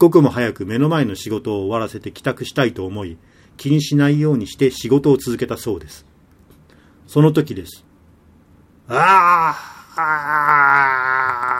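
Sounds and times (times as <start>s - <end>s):
speech: 0.0s - 6.1s, 7.1s - 7.9s, 8.9s - 11.4s
low male scream: 8.9s - 11.5s.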